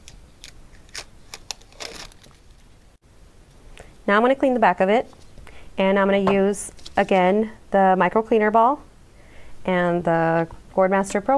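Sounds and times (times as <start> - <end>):
Stick and Burn sheet peeled off a gourd cutout: 0.8 - 2.7
speech: 4.1 - 5.2, 5.8 - 8.9, 9.6 - 11.3.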